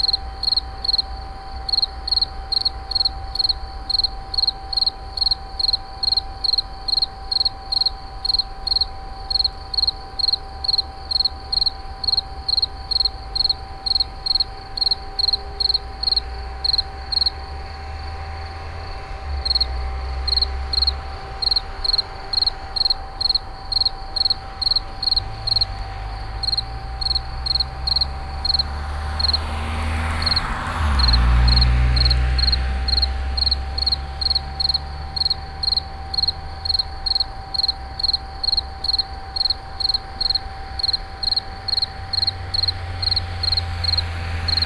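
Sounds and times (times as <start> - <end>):
insect chirping: 0.0 - 44.6
low rumble: 42.8 - 44.6.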